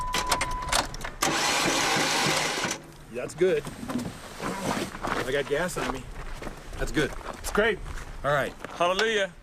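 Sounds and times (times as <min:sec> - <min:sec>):
engine cranked and starting: 0:00.2 - 0:02.8
speech: 0:03.2 - 0:06.1, 0:06.8 - 0:09.4.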